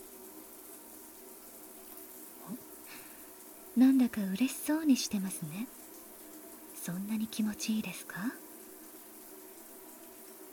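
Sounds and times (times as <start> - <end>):
running water rinsing away soap suds: 0.0 - 10.5
speech: 3.8 - 5.8, 6.8 - 8.4.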